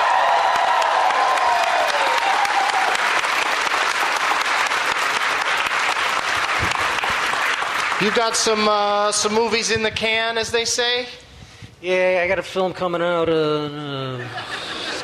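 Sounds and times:
comedy show audience applauding a guest: 0:00.0 - 0:09.8
speech: 0:08.0 - 0:11.2, 0:11.8 - 0:14.6
laughter: 0:14.0 - 0:15.0.

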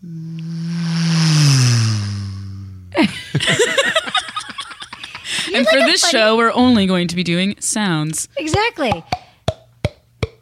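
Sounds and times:
voice imitating a car passing on a highway: 0:00.0 - 0:03.0
laughter: 0:03.0 - 0:06.2
speech: 0:05.6 - 0:09.2.

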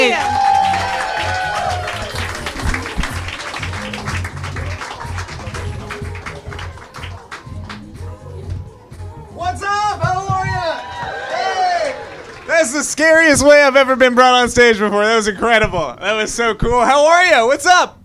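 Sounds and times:
audience applause and cheering: 0:00.0 - 0:08.2, 0:10.0 - 0:13.6
speech: 0:13.3 - 0:18.0.

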